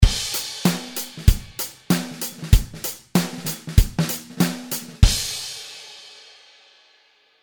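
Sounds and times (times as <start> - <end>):
snare ghost notes: 0.6 - 5.0.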